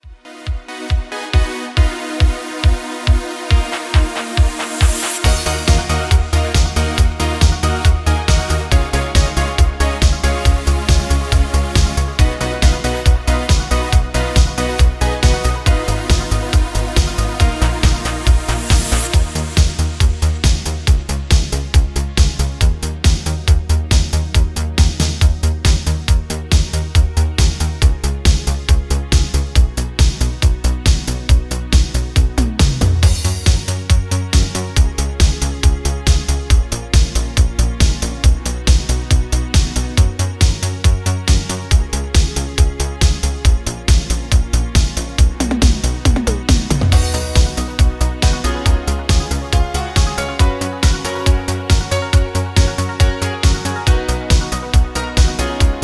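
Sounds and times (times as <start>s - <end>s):
instrumental music: 0.0s - 55.8s.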